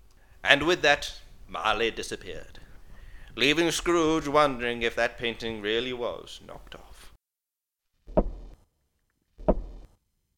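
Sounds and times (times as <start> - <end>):
speech: 0.4 - 2.6, 3.4 - 6.8
tobacco pipe being knocked empty: 8.1 - 8.6, 9.4 - 9.9.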